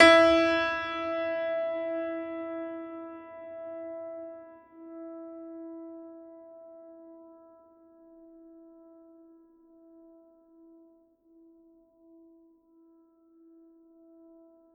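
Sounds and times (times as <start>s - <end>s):
classical piano E3 note: 0.0s - 4.6s.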